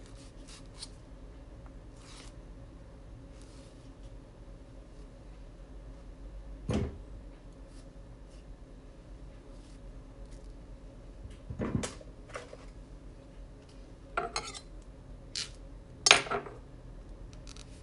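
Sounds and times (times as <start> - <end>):
low steady hum: 0.0 - 17.8
kitchen scrapes and clatters while making banana bread: 14.2 - 14.7.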